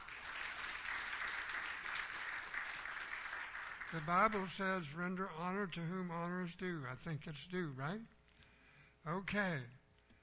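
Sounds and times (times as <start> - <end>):
audience applause for a pianist: 0.0 - 4.5
speech: 3.9 - 8.2, 9.0 - 9.8.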